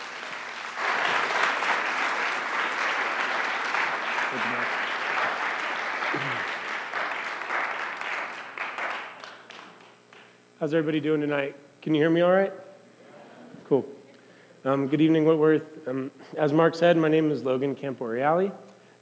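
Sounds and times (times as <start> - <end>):
audience applause at Whitworth welcoming a speaker: 0.0 - 10.3
speech: 10.6 - 12.7, 13.7 - 14.0, 14.6 - 18.7.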